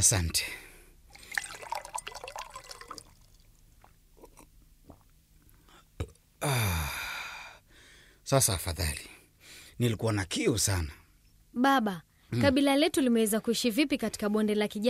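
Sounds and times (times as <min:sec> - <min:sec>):
speech: 0:00.0 - 0:00.7, 0:06.4 - 0:06.8, 0:08.3 - 0:09.1, 0:09.8 - 0:11.0, 0:11.6 - 0:14.8
small splashes: 0:01.1 - 0:03.6
steady stream of liquid pouring: 0:01.1 - 0:04.0
faint swallowing: 0:01.1 - 0:06.2.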